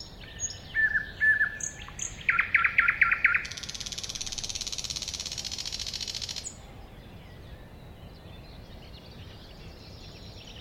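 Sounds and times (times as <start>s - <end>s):
Thrush nightingale song: 0.0s - 10.6s.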